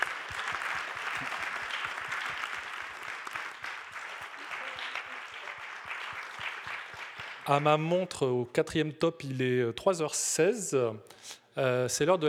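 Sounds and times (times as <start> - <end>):
audience applause for panelists: 0.0 - 7.7
speech: 7.5 - 12.2.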